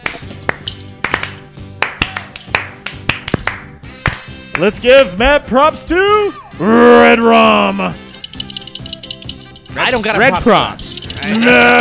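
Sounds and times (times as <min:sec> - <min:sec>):
slow clap: 0:00.0 - 0:04.7
speech: 0:04.6 - 0:08.0, 0:09.8 - 0:11.7.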